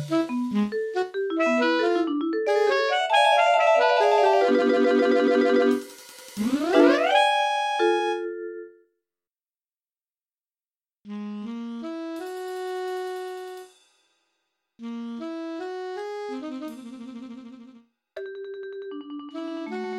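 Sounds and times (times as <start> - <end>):
MIDI music: 0.0 - 5.8, 6.4 - 8.7, 19.3 - 19.9.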